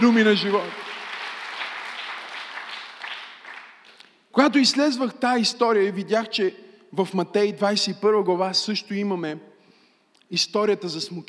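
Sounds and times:
speech: 0.0 - 0.8, 4.4 - 9.5, 10.3 - 11.2
large crowd applauding: 0.0 - 4.0.

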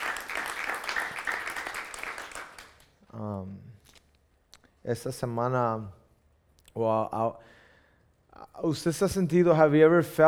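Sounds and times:
audience applause: 0.0 - 2.9
speech: 4.8 - 6.0, 6.8 - 7.6, 8.6 - 10.2.

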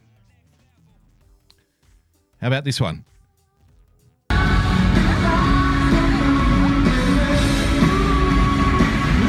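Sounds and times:
speech: 2.4 - 3.1
large crowd cheering at a political rally: 4.3 - 9.2.

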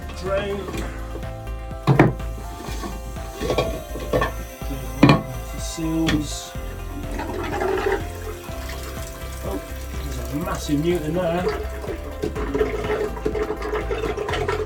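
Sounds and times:
water draining from swimming pool pipes: 0.0 - 14.6
speech: 0.2 - 1.0, 5.8 - 6.6, 10.4 - 14.1.

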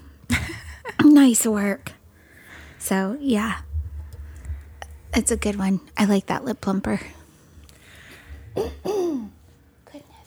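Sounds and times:
speech: 1.1 - 1.9, 2.8 - 3.7, 5.2 - 7.2, 8.6 - 9.3
cough: 8.5 - 9.4.

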